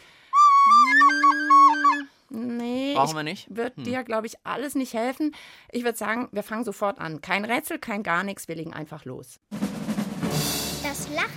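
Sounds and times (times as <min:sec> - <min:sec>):
flute blown loudly: 0:00.4 - 0:02.1
speech: 0:03.0 - 0:09.7, 0:11.1 - 0:11.3.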